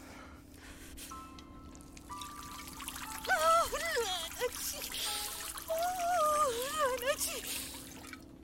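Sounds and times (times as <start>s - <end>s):
rubbing alcohol poured onto a wound, trickling hiss: 1.8s - 8.2s.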